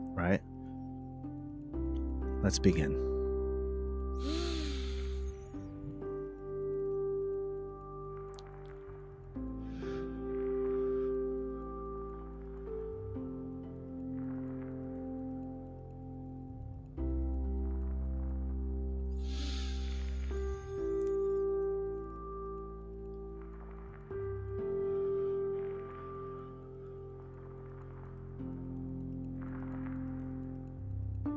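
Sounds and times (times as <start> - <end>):
soft sustained music: 0.0 - 31.3
speech: 0.2 - 0.5, 2.4 - 3.1, 4.2 - 4.6
deep breathing in through the nose and out through the mouth: 4.2 - 5.7, 9.6 - 11.5, 19.2 - 20.8.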